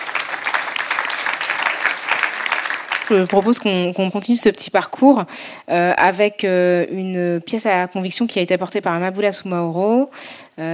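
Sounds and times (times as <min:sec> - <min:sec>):
audience applause: 0:00.0 - 0:03.7
speech: 0:03.1 - 0:10.7.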